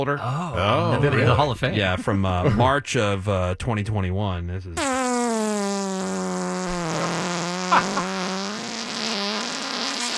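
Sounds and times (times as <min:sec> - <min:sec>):
speech: 0:00.0 - 0:05.0, 0:07.7 - 0:08.0
long recorded fart: 0:04.8 - 0:10.1.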